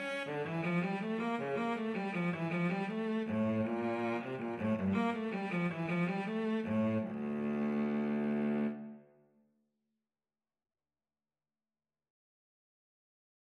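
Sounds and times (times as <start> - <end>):
violin and cello duet: 0.0 - 9.0.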